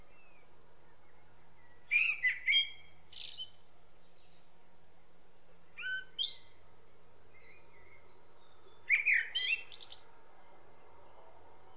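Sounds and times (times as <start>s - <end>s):
common blackbird singing: 0.1s - 4.5s, 5.7s - 10.0s.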